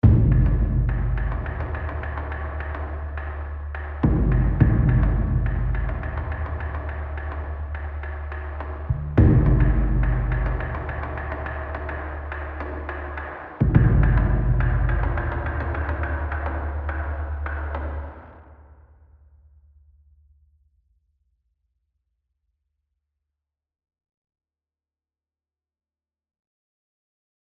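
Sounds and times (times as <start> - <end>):
tension music: 0.0 - 18.4.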